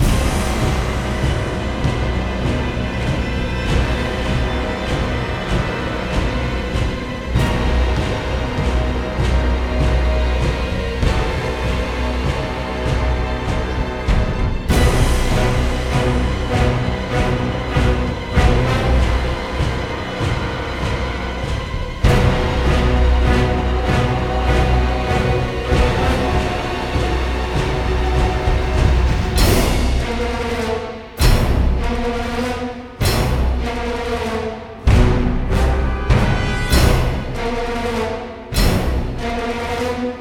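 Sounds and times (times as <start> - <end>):
frantic boss fight music: 0.0 - 40.2.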